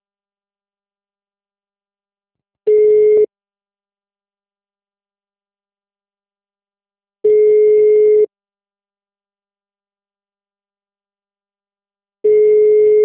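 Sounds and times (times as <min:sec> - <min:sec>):
telephone call ringing tone: 0:02.7 - 0:03.3, 0:07.3 - 0:08.3, 0:12.3 - 0:13.0.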